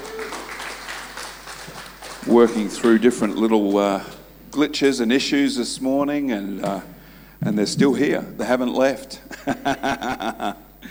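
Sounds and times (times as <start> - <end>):
audience clapping hands: 0.0 - 4.0
speech: 2.2 - 10.8
laughter: 2.3 - 3.8, 9.3 - 10.6.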